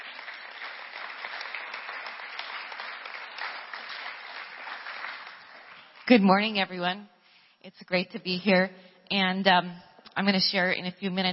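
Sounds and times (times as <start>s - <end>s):
church congregation applauding to welcome a speaker at a service: 0.0s - 6.1s
speech: 6.1s - 11.3s.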